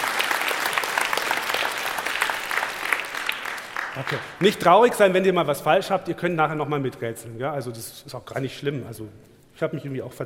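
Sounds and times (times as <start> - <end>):
audience applause: 0.0 - 4.6
speech: 4.0 - 10.2.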